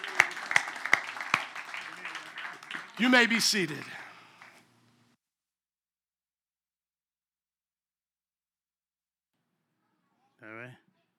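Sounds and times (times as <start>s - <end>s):
round of applause: 0.0s - 4.6s
speech: 3.0s - 4.0s.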